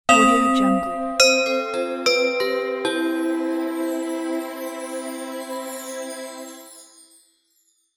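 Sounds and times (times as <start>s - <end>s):
bells ringing: 0.1s - 7.8s.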